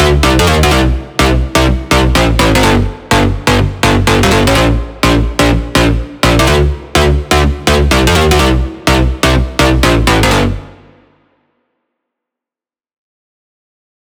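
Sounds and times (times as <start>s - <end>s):
future house main bass: 0.0s - 10.6s.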